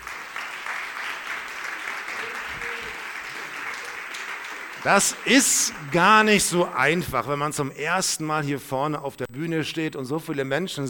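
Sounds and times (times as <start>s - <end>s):
audience applause: 0.0s - 7.0s
speech: 4.8s - 10.8s.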